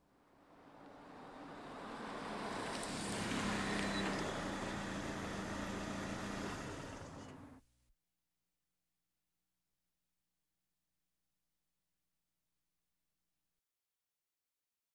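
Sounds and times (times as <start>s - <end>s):
various automobiles: 0.1s - 7.6s.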